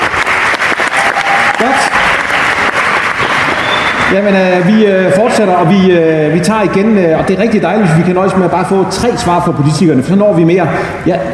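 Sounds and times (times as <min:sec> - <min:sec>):
audience applause: 0:00.0 - 0:05.4
whistle-like tone: 0:03.2 - 0:04.1
speech: 0:04.1 - 0:11.3.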